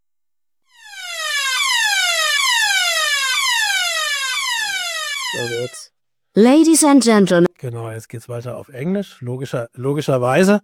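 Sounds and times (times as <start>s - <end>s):
hotel fire alarm: 0.7s - 5.9s
speech: 5.4s - 10.6s.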